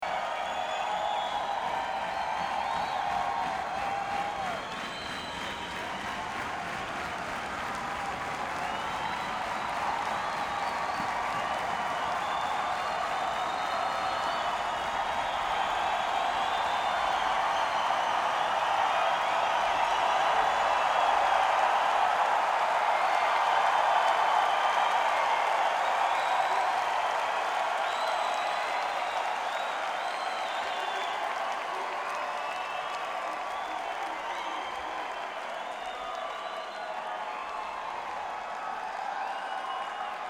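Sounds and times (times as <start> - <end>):
crowd: 0.0 - 40.2.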